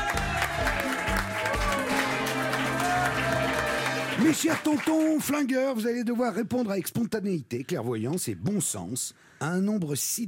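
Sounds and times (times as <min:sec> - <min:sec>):
audience applause: 0:00.0 - 0:05.5
speech: 0:04.2 - 0:10.2.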